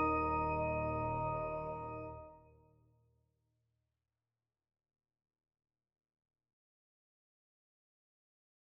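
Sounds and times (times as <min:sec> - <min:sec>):
music box: 0:00.0 - 0:02.1.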